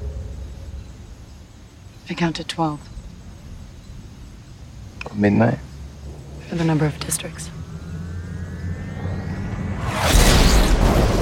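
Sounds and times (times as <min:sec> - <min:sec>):
speech: 0:02.1 - 0:03.0, 0:05.2 - 0:05.7, 0:06.5 - 0:07.6
vicious lightning strike: 0:06.2 - 0:11.2.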